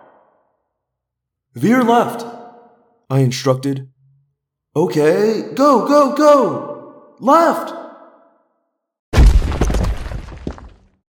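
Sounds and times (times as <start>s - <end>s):
speech: 1.5s - 2.3s, 3.1s - 3.9s, 4.8s - 7.8s
heavy crash of something smashing through a wall: 9.1s - 10.9s
crackling clattering debris: 9.2s - 10.9s.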